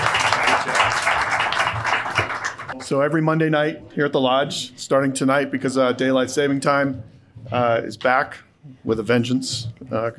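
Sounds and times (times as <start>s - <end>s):
audience applause at a roadhouse-style venue: 0.0s - 2.8s
speech: 2.9s - 10.1s.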